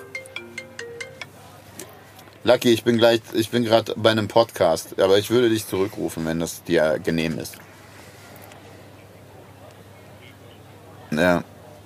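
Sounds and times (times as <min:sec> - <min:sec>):
mobile phone ringing with a melodic ringtone: 0:00.0 - 0:01.4
speech: 0:02.4 - 0:07.7, 0:11.2 - 0:11.5.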